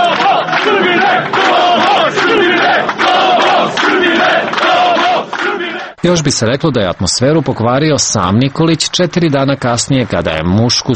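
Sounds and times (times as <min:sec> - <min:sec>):
large crowd chanting at a rally: 0:00.0 - 0:06.0
speech: 0:06.0 - 0:10.9.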